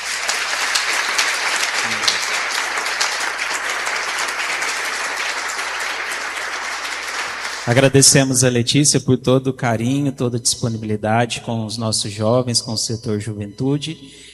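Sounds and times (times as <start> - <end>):
round of applause: 0.0 - 8.2
speech: 7.7 - 14.3.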